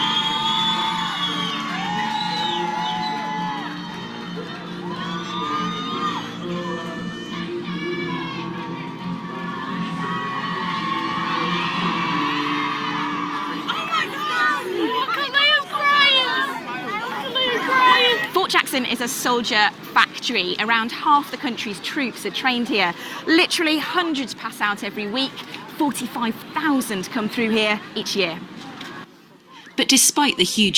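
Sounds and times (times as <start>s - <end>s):
large crowd cheering and whooping wildly: 0.0s - 18.4s
speech: 18.9s - 28.5s, 29.9s - 30.7s.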